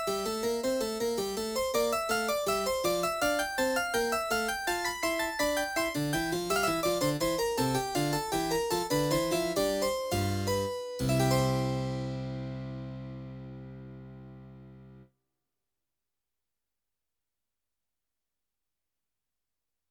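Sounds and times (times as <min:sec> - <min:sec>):
Yamaha NP-30 harpsichord demo song: 0:00.0 - 0:15.0.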